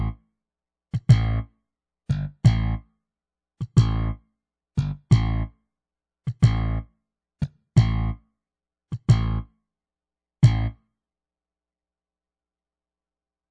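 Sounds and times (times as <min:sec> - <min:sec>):
bass solo: 0:00.0 - 0:00.2, 0:01.0 - 0:01.5, 0:02.1 - 0:02.8, 0:03.6 - 0:04.2, 0:04.8 - 0:05.6, 0:06.3 - 0:08.2, 0:08.9 - 0:09.5, 0:10.4 - 0:10.8.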